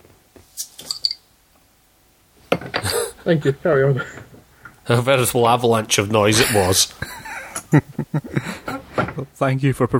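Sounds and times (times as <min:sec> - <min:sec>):
beer bottle being opened: 0:00.6 - 0:01.2
speech: 0:03.2 - 0:04.3, 0:04.9 - 0:07.1, 0:09.4 - 0:09.9
laughter: 0:06.3 - 0:09.1.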